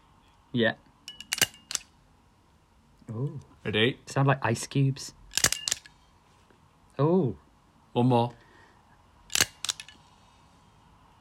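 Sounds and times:
speech: 0.5s - 0.9s, 3.1s - 5.2s, 7.0s - 7.4s, 8.0s - 8.4s
stapler clicking: 5.3s - 5.9s, 9.3s - 10.0s.

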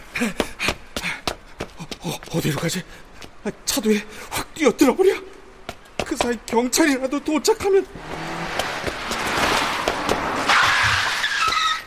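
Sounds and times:
speech: 0.2s - 0.5s, 2.3s - 5.3s, 6.1s - 8.3s
car stopping: 7.9s - 11.7s.

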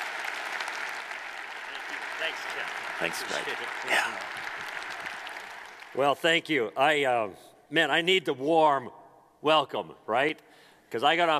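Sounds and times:
church audience applause welcoming a guest speaker: 0.0s - 6.2s
speech: 2.2s - 4.4s, 6.0s - 11.3s.

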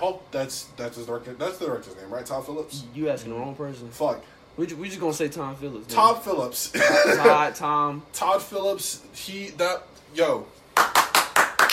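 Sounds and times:
speech: 0.0s - 10.6s
hand clapping: 10.7s - 11.7s.

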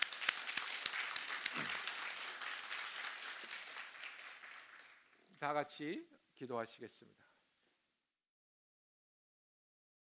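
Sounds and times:
audience applause: 0.0s - 5.1s
speech: 5.4s - 7.2s.

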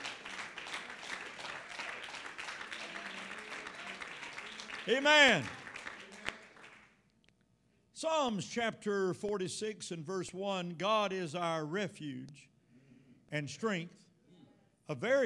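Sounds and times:
audience clapping: 0.0s - 7.0s
speech: 4.8s - 5.6s, 8.0s - 12.5s, 13.3s - 14.0s, 14.9s - 15.2s.

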